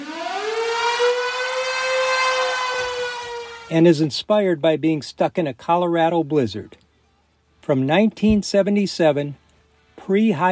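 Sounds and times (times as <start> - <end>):
storm siren at the opening of a live 1970s rock song: 0.0 - 3.8
speech: 3.7 - 6.8, 7.7 - 9.4, 10.1 - 10.5.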